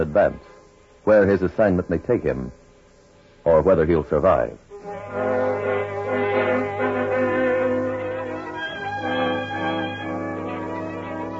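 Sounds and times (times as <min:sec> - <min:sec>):
speech: 0:00.0 - 0:02.6, 0:03.4 - 0:05.4
distant whistle of a southbound freight train at night: 0:04.7 - 0:11.3.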